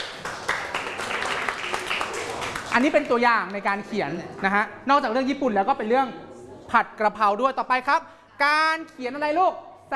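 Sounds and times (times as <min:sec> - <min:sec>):
class applauding themselves after a lesson: 0:00.0 - 0:03.2
speech: 0:02.8 - 0:09.9.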